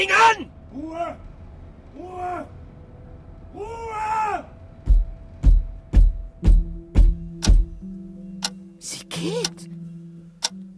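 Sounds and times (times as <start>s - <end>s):
speech: 0.0s - 1.3s
kitchen clock ticking: 4.9s - 9.8s, 10.4s - 10.7s.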